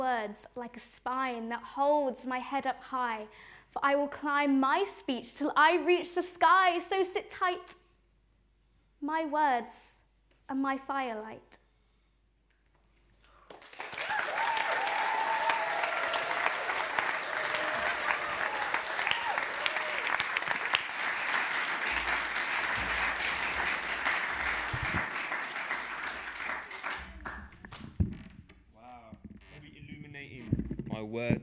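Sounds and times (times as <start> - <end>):
speech: 0.0 - 7.8, 9.0 - 11.6
audience applause: 13.5 - 28.0.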